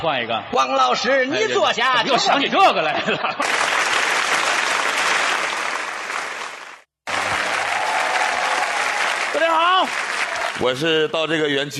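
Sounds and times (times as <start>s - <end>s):
speech: 0.0s - 3.8s, 9.4s - 11.7s
laughter: 2.1s - 3.7s
audience applause: 3.4s - 10.8s
audience screaming: 7.1s - 10.6s.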